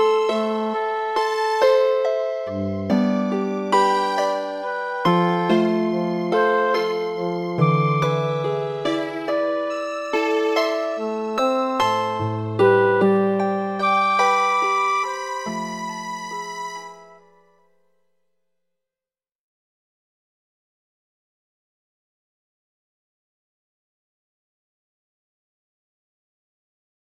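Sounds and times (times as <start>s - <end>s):
fractal tune with chords: 0.0s - 17.8s.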